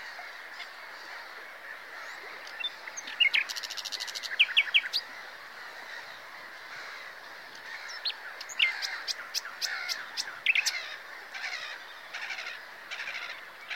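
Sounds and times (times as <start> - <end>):
common nightingale song: 2.4 - 5.1, 7.9 - 13.7.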